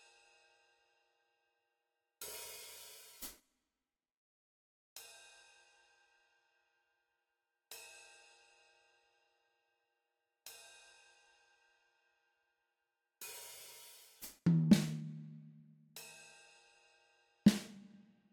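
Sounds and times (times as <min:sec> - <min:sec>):
drums: 0:02.3 - 0:03.3, 0:13.2 - 0:16.1, 0:17.5 - 0:18.0.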